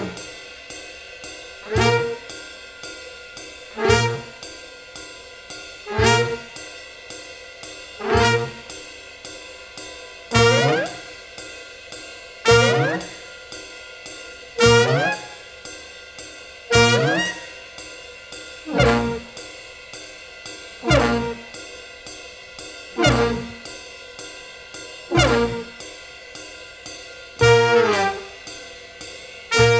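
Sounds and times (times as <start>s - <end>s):
expressive jazz ornamentation: 3.9s - 4.4s, 6.0s - 6.6s, 8.1s - 8.7s, 10.3s - 11.1s, 12.5s - 13.2s, 14.6s - 15.2s, 16.7s - 17.4s, 18.7s - 19.4s, 20.9s - 21.6s, 23.0s - 23.7s, 25.2s - 25.8s, 27.4s - 28.5s, 29.5s - 29.7s.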